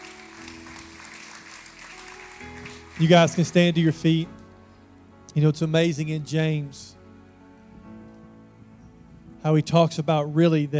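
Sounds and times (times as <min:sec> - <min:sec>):
congregation applauding with hand claps at a church service: 0:00.0 - 0:04.1
speech: 0:02.4 - 0:04.4, 0:05.3 - 0:07.0, 0:09.4 - 0:10.7.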